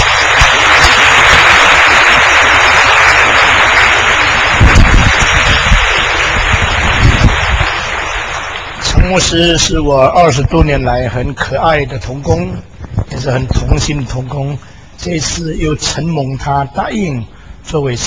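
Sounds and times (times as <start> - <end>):
applause: 0.0 - 9.4
speech: 9.1 - 18.0.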